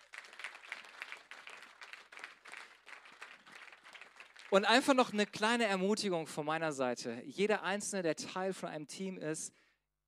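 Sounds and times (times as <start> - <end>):
audience applause: 0.0 - 4.7
speech: 4.5 - 9.6.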